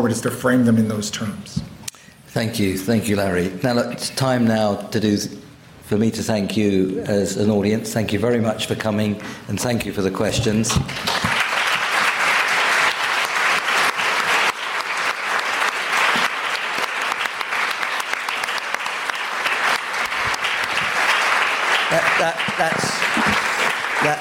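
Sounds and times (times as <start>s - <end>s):
speech: 0.0s - 1.7s, 2.3s - 11.3s
audience applause: 10.8s - 24.1s.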